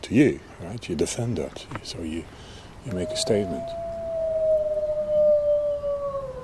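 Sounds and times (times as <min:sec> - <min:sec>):
speech: 0:00.0 - 0:03.8
wolf pack howling: 0:02.9 - 0:06.4.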